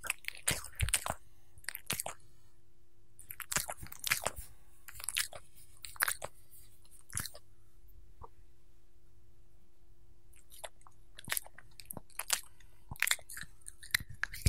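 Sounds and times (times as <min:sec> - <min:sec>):
dog eating and licking while being petted: 0:00.0 - 0:02.2, 0:03.2 - 0:06.3, 0:07.0 - 0:07.4, 0:10.4 - 0:14.4
faint steady hum: 0:00.0 - 0:14.4.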